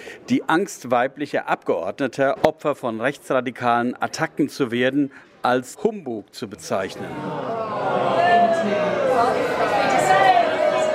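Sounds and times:
speech: 0.3 - 7.7
crowd booing: 6.9 - 10.9.

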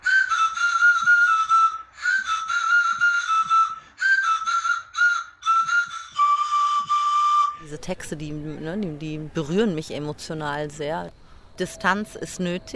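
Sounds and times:
homemade pan flute from disposable razor handles playing a breathy melody: 0.0 - 7.9
speech: 7.7 - 12.7.

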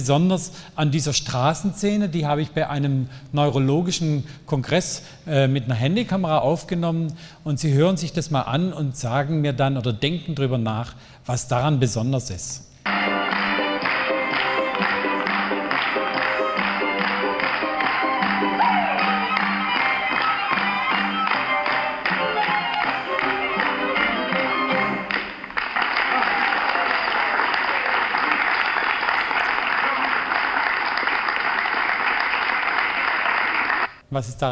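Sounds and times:
speech: 0.0 - 13.2, 34.2 - 34.4
street crowd clapping to accelerating rhythm: 12.9 - 34.0.

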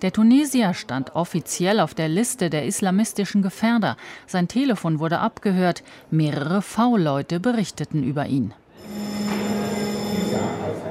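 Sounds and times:
speech: 0.0 - 9.1
electric bell ringing to summon members of parliament to a vote: 8.8 - 10.8.

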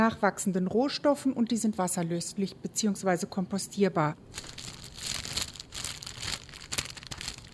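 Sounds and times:
speech: 0.0 - 4.6
cellophane bag crinkling: 4.3 - 7.5.

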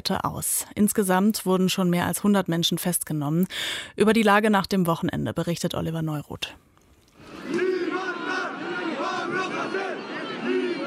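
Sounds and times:
speech: 0.0 - 6.6
protest crowd chanting in the street: 7.3 - 10.8.

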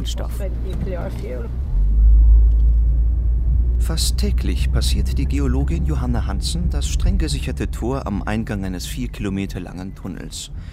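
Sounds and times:
speech: 0.0 - 1.7, 3.8 - 10.7
car engine rumble driving into the Onkalo repository tunnel: 0.0 - 10.7.

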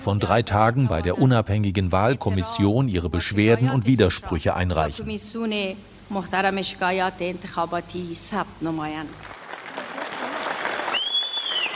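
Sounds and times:
speech: 0.0 - 9.3
supporters of President Ghani cheering: 9.4 - 11.7.

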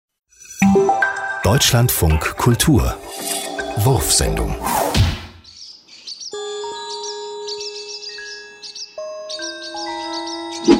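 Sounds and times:
speech: 1.4 - 4.8
swallows chirping in flight: 5.4 - 10.7.

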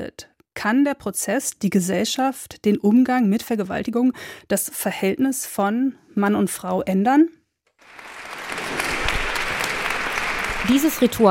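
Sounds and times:
speech: 0.0 - 8.2, 10.7 - 11.3
crowd applause greeting Gisèle Pelicot entering the Avignon courthouse: 7.8 - 11.3.

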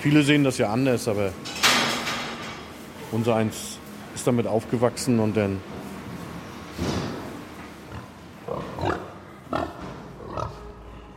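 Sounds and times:
speech: 0.0 - 1.6, 3.1 - 5.7
pigs grunting: 7.8 - 11.1.

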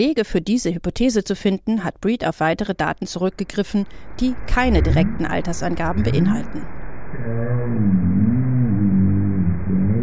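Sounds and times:
speech: 0.0 - 8.3
North Atlantic right whale call: 7.1 - 10.0.

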